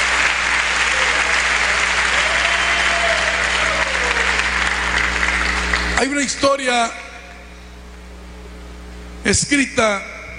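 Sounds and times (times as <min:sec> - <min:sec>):
sustained loud crowd applause: 0:00.0 - 0:06.2
speech: 0:06.0 - 0:07.0, 0:09.2 - 0:10.1.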